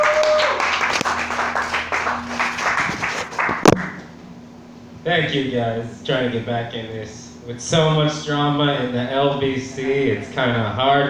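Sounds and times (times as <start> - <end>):
audience clapping for comedian: 0.0 - 4.1
speech: 5.0 - 11.0.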